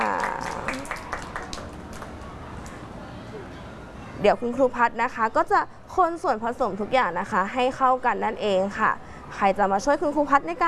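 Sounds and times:
children clapping: 0.0 - 2.8
speech: 4.2 - 10.6.

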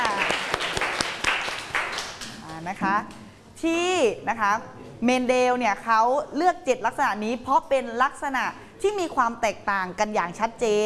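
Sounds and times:
people applauding a student group: 0.0 - 2.7
speech: 2.7 - 10.8.

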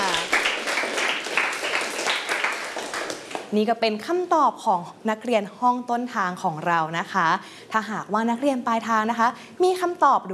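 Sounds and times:
classroom applause: 0.0 - 3.5
speech: 3.5 - 10.3.

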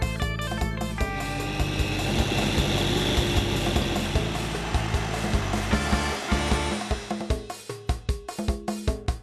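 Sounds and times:
rhythmic beats: 0.1 - 9.2
blender blending Manila tamarind with coconut milk: 1.0 - 7.5.

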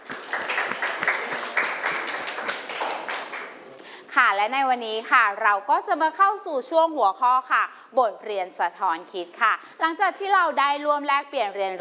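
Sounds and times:
applause: 0.0 - 3.6
speech: 4.3 - 11.7.

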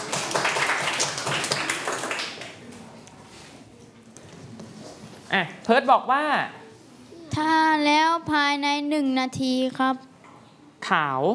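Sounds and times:
students clapping: 0.0 - 2.6
speech: 5.3 - 6.6, 7.4 - 10.1, 10.9 - 11.3.

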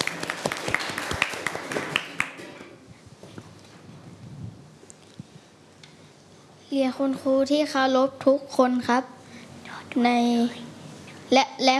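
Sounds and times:
classroom full of students applauding: 0.0 - 2.7
speech: 6.8 - 9.2, 10.0 - 10.6, 11.3 - 11.7.

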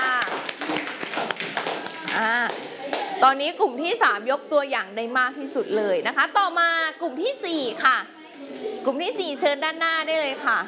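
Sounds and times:
classroom clapping: 0.0 - 3.2
speech: 3.2 - 8.2, 8.8 - 10.6.

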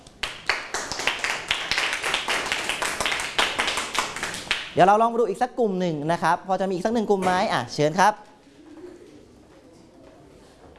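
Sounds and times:
classroom applause: 0.2 - 4.8
speech: 4.8 - 8.3.

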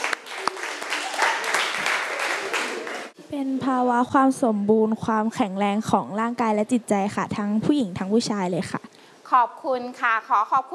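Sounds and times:
classroom applause: 0.0 - 3.2
speech: 3.3 - 10.7.

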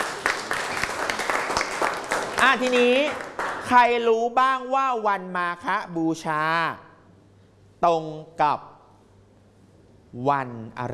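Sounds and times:
classmates clapping for a correct answer in a class: 0.0 - 3.8
speech: 2.4 - 6.8, 7.8 - 8.7, 10.1 - 10.9.

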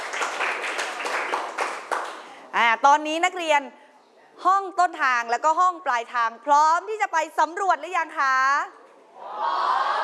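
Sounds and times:
classroom applause: 0.0 - 2.4
speech: 2.8 - 3.8, 4.4 - 8.8, 9.4 - 9.9.

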